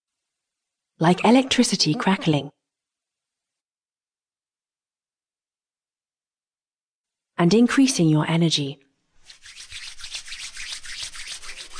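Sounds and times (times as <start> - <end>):
speech: 1.0 - 2.6, 7.4 - 8.8
hands rubbing together: 9.2 - 11.7.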